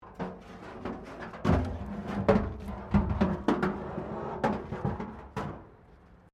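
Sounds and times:
metal bin scraping: 0:00.0 - 0:05.9
plastic crash barrier crashing: 0:01.3 - 0:05.7.

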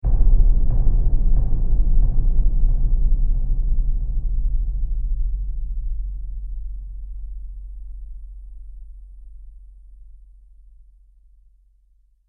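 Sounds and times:
trailer drum hit: 0:00.0 - 0:06.6.

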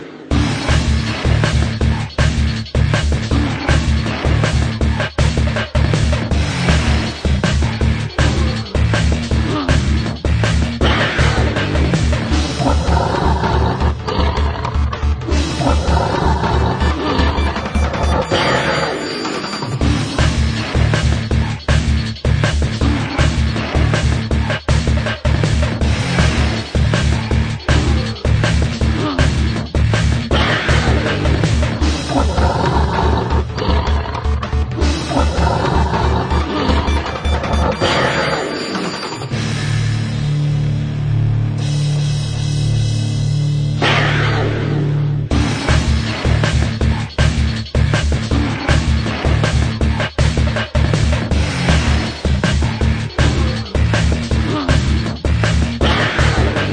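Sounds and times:
metal music: 0:00.3 - 0:56.7.

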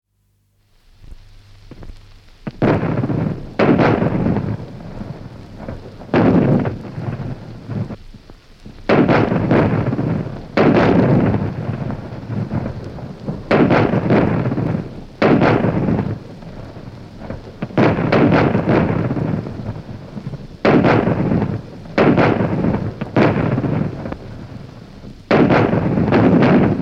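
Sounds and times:
heavy gunfire: 0:02.6 - 0:08.0, 0:08.8 - 0:26.8.

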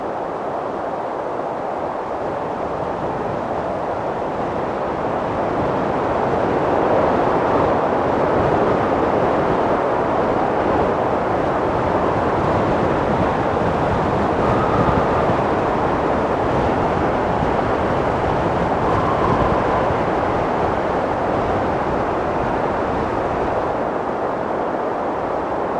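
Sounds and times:
storm: 0:00.0 - 0:25.7
wind: 0:00.0 - 0:25.7.

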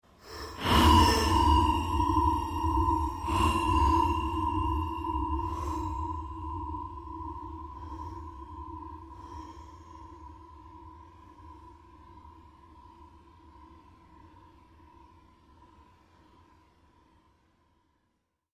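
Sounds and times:
various sweeps: 0:00.1 - 0:09.5
drones: 0:00.1 - 0:10.5
pulses: 0:00.2 - 0:08.9.

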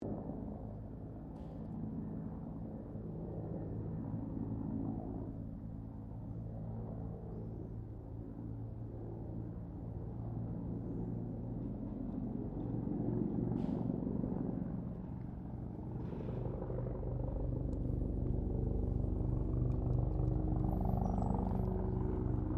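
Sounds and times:
distant Bell 204 firefighter helicopter manoeuvring: 0:00.0 - 0:22.5.

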